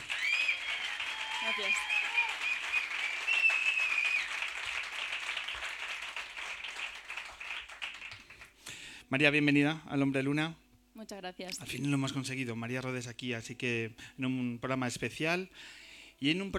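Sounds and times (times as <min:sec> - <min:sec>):
audience applause: 0:00.0 - 0:08.6
speech: 0:01.4 - 0:02.0, 0:09.1 - 0:16.5.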